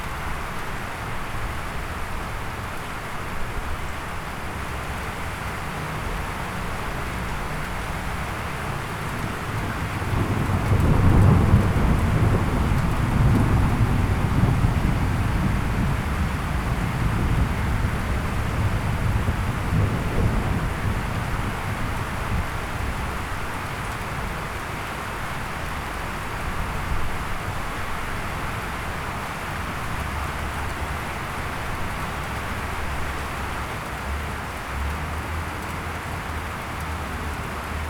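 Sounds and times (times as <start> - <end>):
rain: 0.0 - 37.8
thunder from lightning: 9.9 - 22.4.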